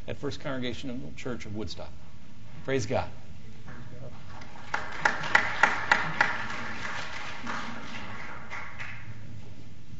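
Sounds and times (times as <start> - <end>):
speech: 0.1 - 3.2
audience clapping: 4.3 - 9.4.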